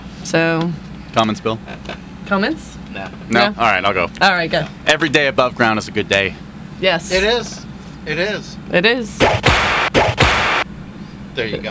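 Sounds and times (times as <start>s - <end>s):
speech: 0.3s - 10.2s, 11.4s - 11.6s
whip crack sound effect: 9.2s - 10.6s.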